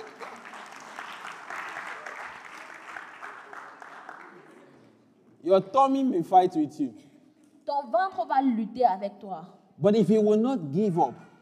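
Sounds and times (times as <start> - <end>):
audience clapping: 0.0 - 5.1
speech: 5.4 - 7.1, 7.8 - 11.3.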